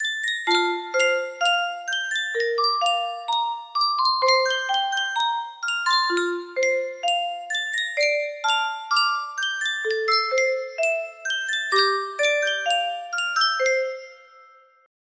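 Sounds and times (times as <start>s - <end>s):
Sankyo custom tune music box melody: 0.0s - 14.9s.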